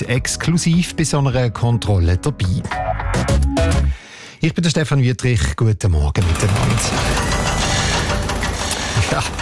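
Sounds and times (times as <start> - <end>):
speech: 0.0 - 7.8, 9.1 - 9.4
construction site machinery rumbling: 6.2 - 9.4.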